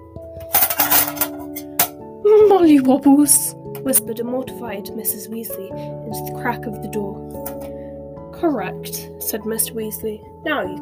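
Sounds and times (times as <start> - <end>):
speech: 0.2 - 0.5, 2.4 - 7.6, 8.4 - 10.8
spoon clattering against a soup bowl: 0.5 - 2.0.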